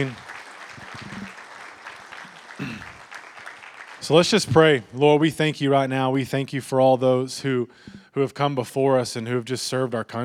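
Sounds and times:
speech: 0.0 - 0.2, 4.1 - 10.2
audience applause: 0.0 - 4.8.

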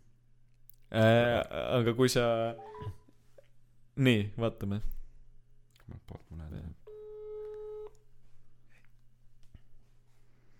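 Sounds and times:
speech: 0.9 - 3.0, 4.0 - 5.0
telephone ringing tone: 6.9 - 8.0.

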